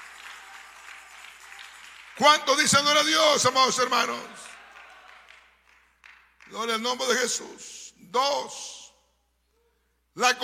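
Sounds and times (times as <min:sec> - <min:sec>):
audience applause: 0:00.0 - 0:02.4, 0:03.9 - 0:06.3
speech: 0:02.2 - 0:04.5, 0:06.5 - 0:08.8, 0:10.2 - 0:10.4.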